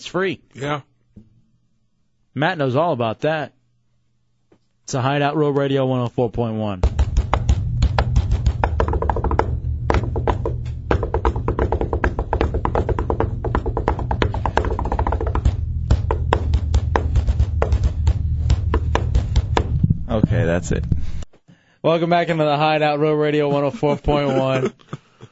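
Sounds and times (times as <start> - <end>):
speech: 0.0 - 0.9, 2.4 - 3.6, 4.9 - 7.0, 20.6 - 21.1, 21.8 - 25.0
fast hand drumming on resonant tabletops: 6.8 - 20.5
laughter: 23.4 - 25.3.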